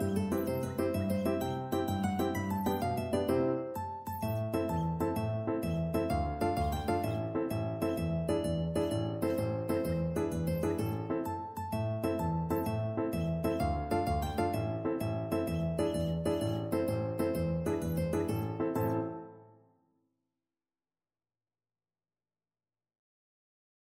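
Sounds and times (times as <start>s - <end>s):
tarantella on mandolin: 0.0s - 19.2s.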